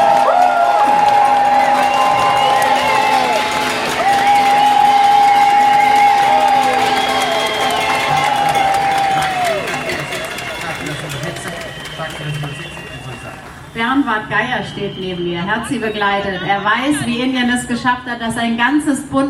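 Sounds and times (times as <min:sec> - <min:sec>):
loud applause: 0:00.0 - 0:13.8
speech: 0:14.3 - 0:19.2.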